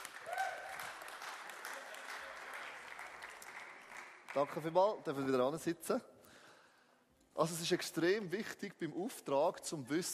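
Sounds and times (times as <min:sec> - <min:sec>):
audience applause: 0:00.0 - 0:04.8
speech: 0:04.4 - 0:06.1, 0:07.4 - 0:10.1.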